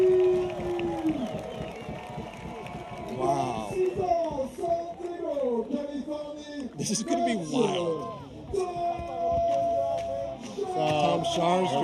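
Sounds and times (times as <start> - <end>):
excited crowd cheering at skating finals: 0.0 - 11.8
speech: 6.8 - 7.9.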